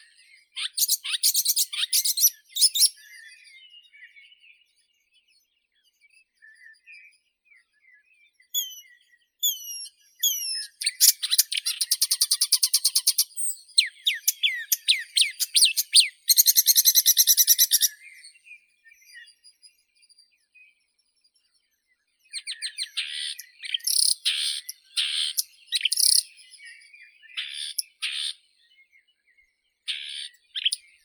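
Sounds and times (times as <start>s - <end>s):
marsh warbler Acrocephalus palustris singing: 0.0s - 3.5s, 8.6s - 18.6s, 22.3s - 28.4s.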